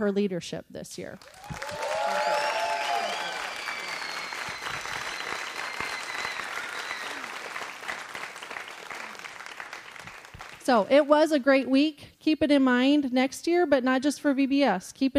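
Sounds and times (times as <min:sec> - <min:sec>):
speech: 0:00.0 - 0:01.8, 0:10.7 - 0:15.1
people cheering: 0:01.2 - 0:10.5
crowd clapping: 0:01.2 - 0:10.8
loud whistles: 0:01.3 - 0:07.6.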